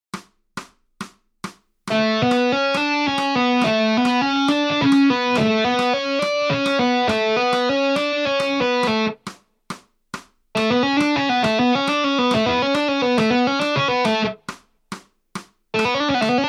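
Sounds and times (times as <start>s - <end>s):
musical lick: 1.9s - 9.2s, 10.6s - 14.5s, 15.8s - 16.4s.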